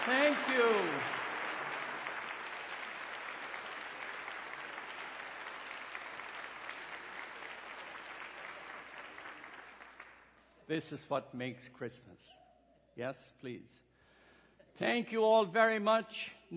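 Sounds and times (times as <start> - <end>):
crowd clapping: 0.0 - 10.5
speech: 0.1 - 1.2, 10.7 - 12.4, 13.0 - 13.9, 14.8 - 16.5.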